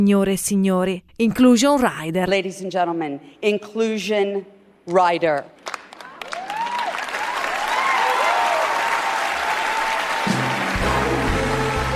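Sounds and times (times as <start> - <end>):
speech: 0.0 - 5.6
loud applause: 5.7 - 11.9.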